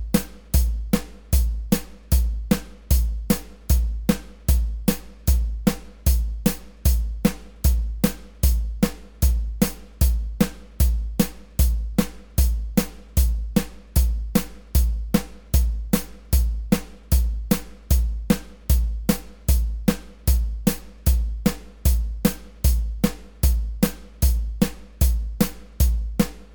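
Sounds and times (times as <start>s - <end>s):
bass at 152 bpm: 0.0s - 26.5s.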